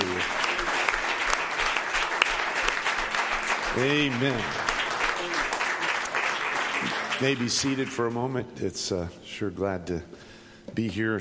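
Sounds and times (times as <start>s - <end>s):
audience hand clapping: 0.0s - 8.3s
speech: 3.8s - 4.6s, 7.2s - 11.1s.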